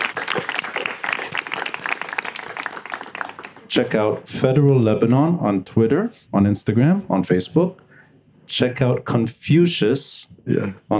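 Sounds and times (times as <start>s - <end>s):
audience applause: 0.0s - 3.7s
speech: 3.7s - 7.8s, 8.5s - 10.9s.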